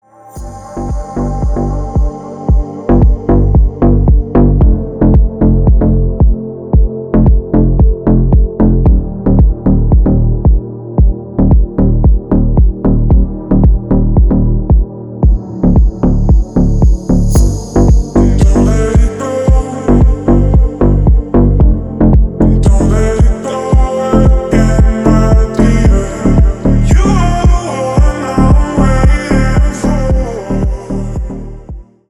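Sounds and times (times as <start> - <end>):
deep dark vocal mix: 0.4 - 32.0.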